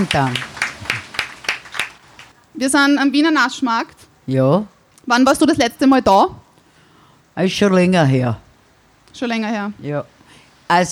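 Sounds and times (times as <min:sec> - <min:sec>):
speech: 0:00.0 - 0:00.5, 0:02.6 - 0:06.4, 0:07.4 - 0:08.4, 0:09.2 - 0:10.1, 0:10.7 - 0:10.9
small group of audience members clapping: 0:00.0 - 0:02.4.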